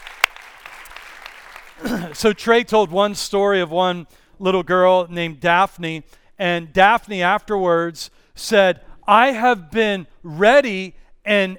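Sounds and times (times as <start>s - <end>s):
audience applause: 0.0s - 2.2s
speech: 1.8s - 11.5s.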